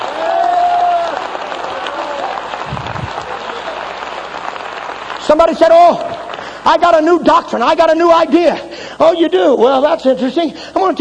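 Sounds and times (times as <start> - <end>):
crowd clapping hands: 0.0 - 8.1
person shouting or whooping: 0.1 - 1.2
speech: 5.3 - 10.9.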